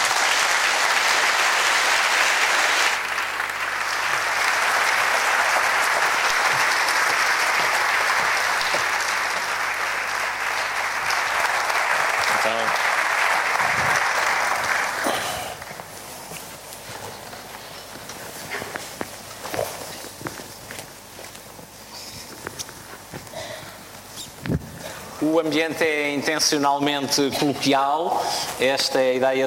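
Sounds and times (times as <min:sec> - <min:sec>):
audience applause: 0:00.0 - 0:15.8
speech: 0:25.4 - 0:29.4.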